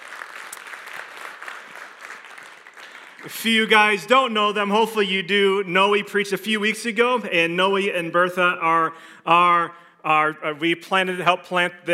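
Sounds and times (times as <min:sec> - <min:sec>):
audience applause: 0:00.0 - 0:03.6
speech: 0:03.2 - 0:11.9.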